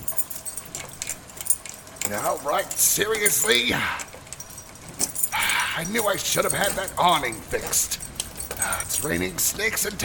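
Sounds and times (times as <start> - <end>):
keys jangling while fumbling with a lock: 0.0 - 10.0
speech: 2.1 - 4.1, 5.8 - 10.0.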